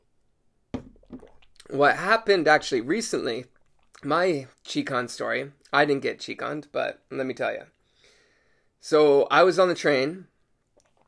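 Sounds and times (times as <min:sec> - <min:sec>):
person drinking water: 0:00.8 - 0:01.9, 0:03.4 - 0:04.1, 0:10.6 - 0:11.0
speech: 0:01.7 - 0:07.8, 0:08.8 - 0:10.3.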